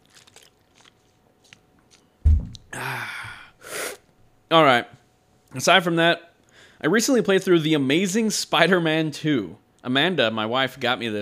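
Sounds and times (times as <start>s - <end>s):
soft low thump: 2.2s - 2.7s
breathy exhale after swallowing water: 2.7s - 4.0s
speech: 4.5s - 4.9s, 5.5s - 11.1s.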